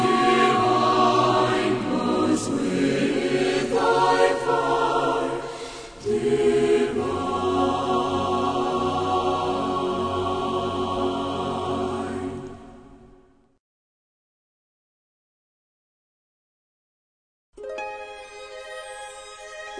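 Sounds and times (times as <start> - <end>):
choir singing: 0.0 - 13.1.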